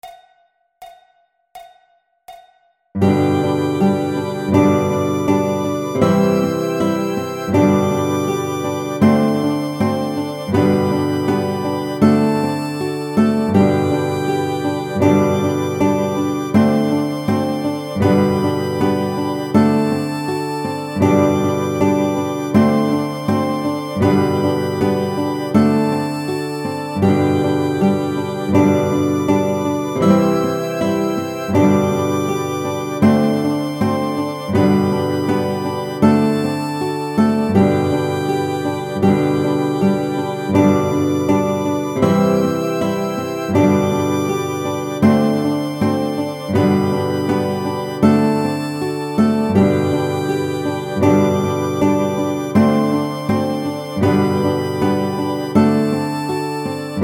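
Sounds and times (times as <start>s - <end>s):
nursery rhyme melody on chromatic instrument: 3.0s - 57.0s.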